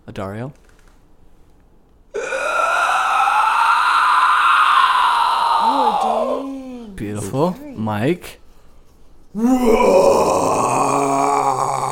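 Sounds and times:
speech: 0.1s - 0.6s, 7.0s - 8.4s, 9.3s - 10.3s
person imitating a roar: 2.1s - 7.0s, 9.4s - 11.8s.

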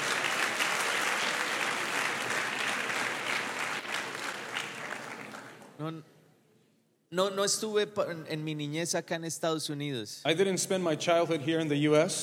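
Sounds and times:
audience applause at a church service: 0.0s - 5.7s
speech: 5.8s - 6.2s, 7.1s - 12.2s.

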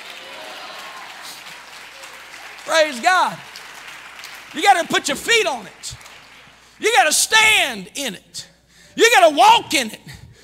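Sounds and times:
audience clapping hands: 0.0s - 7.6s
speech: 2.7s - 3.5s, 4.5s - 6.0s, 6.8s - 10.2s.

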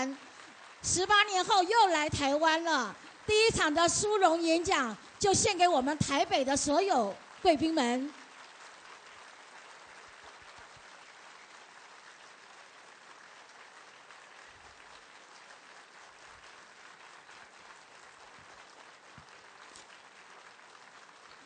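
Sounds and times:
speech: 0.0s - 8.2s
audience applause: 7.4s - 21.4s.

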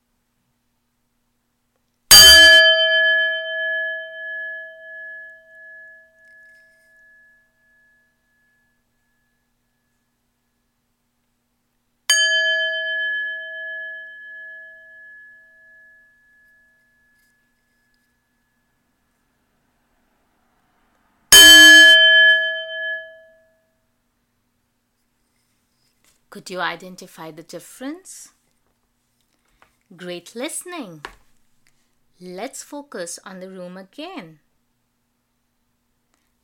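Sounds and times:
bell struck with varying tones: 2.1s - 8.8s, 12.1s - 18.0s, 21.3s - 23.6s
speech: 26.3s - 28.4s, 29.9s - 31.2s, 32.2s - 34.4s.

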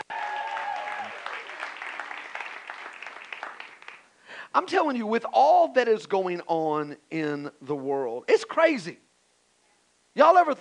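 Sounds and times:
audience applauding and cheering: 0.0s - 4.2s
speech: 4.5s - 9.0s, 10.2s - 10.6s.

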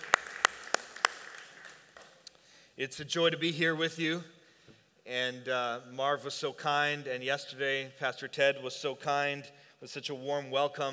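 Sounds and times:
audience clapping: 0.0s - 2.3s
speech: 2.8s - 4.4s, 5.1s - 10.9s.

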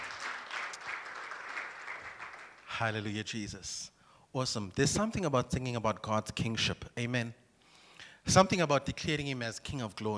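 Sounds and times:
crowd applauding: 0.0s - 2.8s
speech: 2.8s - 7.4s, 8.2s - 10.1s.

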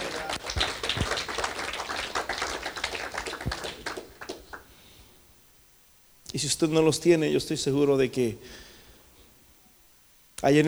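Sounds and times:
congregation applause: 0.0s - 4.7s
speech: 6.3s - 8.7s, 10.4s - 10.6s.

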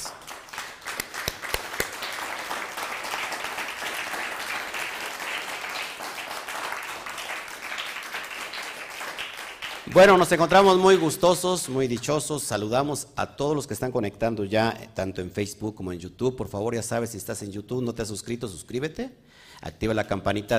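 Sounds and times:
crowd applauding: 0.0s - 12.0s
speech: 9.9s - 20.5s.

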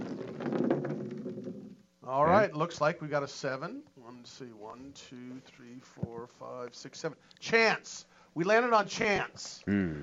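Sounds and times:
dice being rolled: 0.0s - 1.8s
speech: 2.1s - 10.0s.

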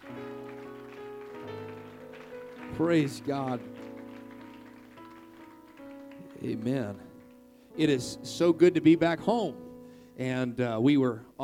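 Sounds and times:
audience clapping: 0.0s - 7.5s
speech: 2.8s - 3.8s, 6.5s - 7.1s, 7.8s - 9.6s, 10.2s - 11.4s.

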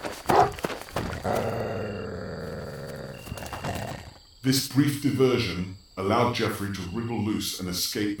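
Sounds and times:
scuffling: 0.0s - 1.8s, 2.4s - 4.2s
dog attacking with snarls and deep growl: 0.3s - 4.2s
speech: 4.4s - 8.1s.

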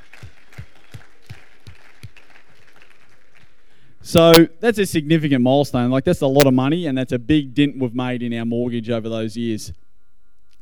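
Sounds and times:
audience applause: 0.0s - 3.6s
speech: 4.1s - 9.8s.

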